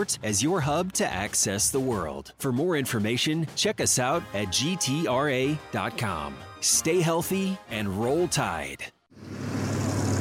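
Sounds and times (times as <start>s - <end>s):
speech: 0.0s - 9.0s
rush-hour road traffic rumble: 9.2s - 10.1s.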